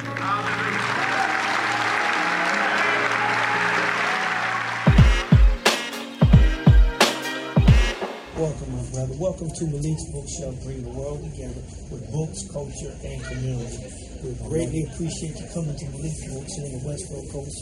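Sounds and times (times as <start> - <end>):
audience applause in a standing ovation: 0.0 - 7.2
speech: 9.2 - 17.6.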